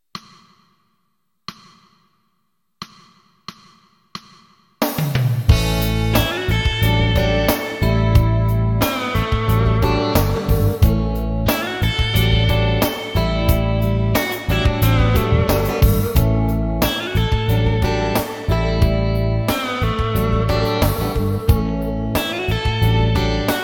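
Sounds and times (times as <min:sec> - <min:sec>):
cool melody: 0:05.5 - 0:23.6.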